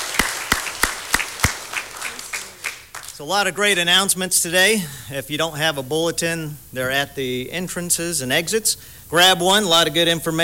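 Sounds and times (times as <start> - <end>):
congregation clapping hands at a church service: 0.0 - 3.2
speech: 3.2 - 10.4.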